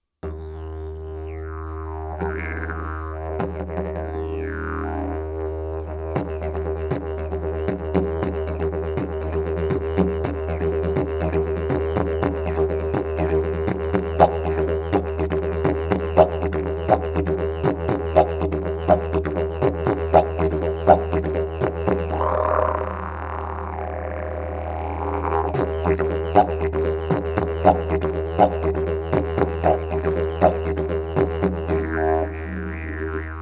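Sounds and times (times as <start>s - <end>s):
didgeridoo: 0.2s - 33.4s.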